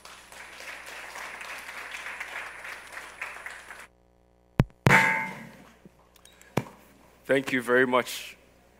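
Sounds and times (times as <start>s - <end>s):
crowd clapping: 0.0s - 3.9s
sharp thump: 4.6s - 5.6s
speech: 7.3s - 8.4s.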